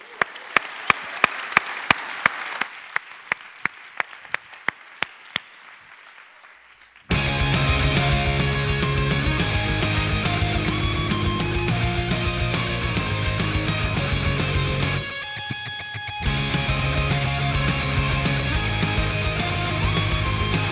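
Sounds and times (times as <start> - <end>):
audience applause for a performer: 0.0 - 15.2, 16.2 - 20.7
loud music: 7.1 - 20.7.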